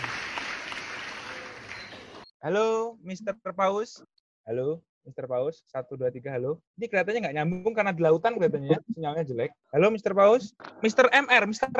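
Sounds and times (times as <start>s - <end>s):
applause: 0.0s - 2.3s
speech: 2.4s - 11.7s.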